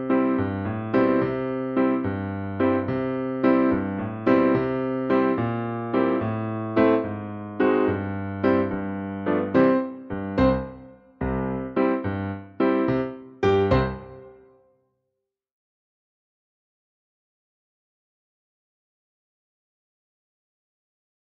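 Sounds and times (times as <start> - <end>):
musical accompaniment only: 0.0 - 14.6.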